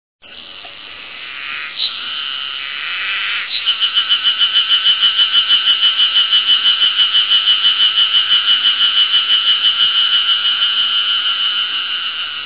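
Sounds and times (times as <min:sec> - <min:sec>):
Ezo-harusemi cicada song: 0:00.2 - 0:12.4.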